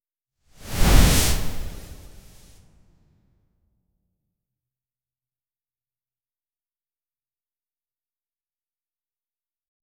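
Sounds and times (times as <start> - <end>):
cloth sliding softly: 0.6 - 2.6.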